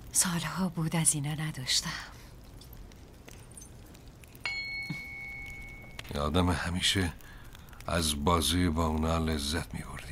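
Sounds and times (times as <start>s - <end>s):
speech: 0.2s - 2.2s, 6.1s - 7.3s, 7.9s - 10.1s
tuning fork struck and ringing: 4.4s - 6.1s.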